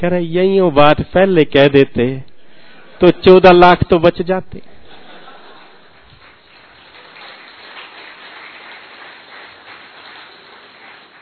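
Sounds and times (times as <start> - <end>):
speech: 0.0 - 2.3, 3.0 - 4.7
laughter: 2.5 - 3.2, 4.6 - 6.5
audience clapping: 4.9 - 11.2.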